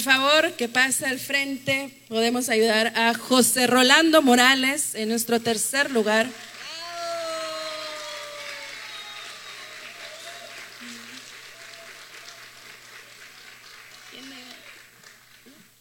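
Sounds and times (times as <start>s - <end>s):
speech: 0.0s - 6.5s
audience applause: 5.8s - 15.8s.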